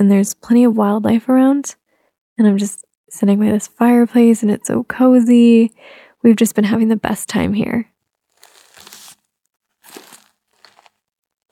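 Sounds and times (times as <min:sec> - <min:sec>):
speech: 0:00.0 - 0:01.8, 0:02.4 - 0:07.9
plastic crinkling: 0:08.2 - 0:11.5.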